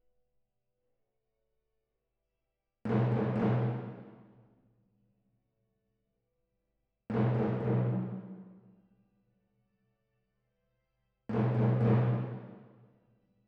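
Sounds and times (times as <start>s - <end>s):
timpani: 2.9s - 4.2s, 7.1s - 8.6s, 11.3s - 12.8s.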